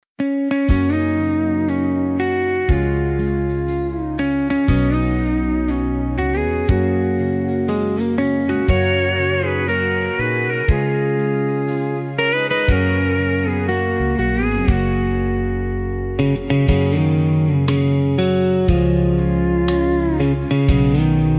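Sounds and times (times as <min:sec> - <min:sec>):
pedal steel guitar instrumental: 0:00.2 - 0:21.3.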